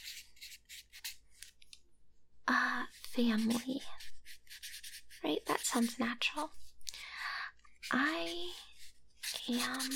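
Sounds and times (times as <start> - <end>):
pen scratching on paper while handwriting a letter: 0.0 - 1.2, 2.9 - 6.0, 7.8 - 9.9
speech: 2.5 - 4.1, 5.2 - 6.6, 7.9 - 8.6, 9.5 - 9.9.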